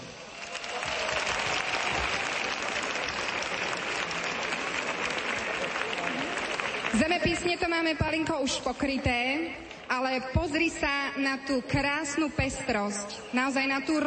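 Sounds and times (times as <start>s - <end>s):
applause: 0.0s - 8.4s
speech: 7.0s - 14.0s.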